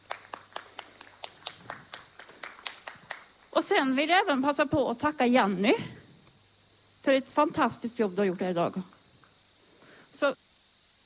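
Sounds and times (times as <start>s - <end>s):
applause: 0.0s - 3.5s
speech: 3.6s - 6.0s, 7.0s - 8.9s, 10.2s - 10.4s.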